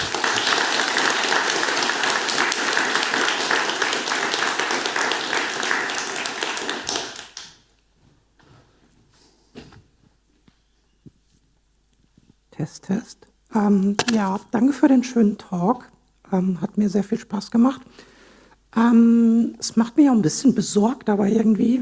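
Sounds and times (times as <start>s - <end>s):
crowd applauding: 0.0s - 7.6s
speech: 13.6s - 18.1s, 18.8s - 21.7s.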